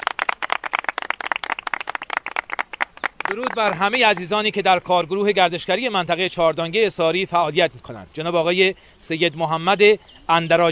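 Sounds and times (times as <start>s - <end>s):
group applauding: 0.0s - 4.6s
speech: 3.3s - 10.6s.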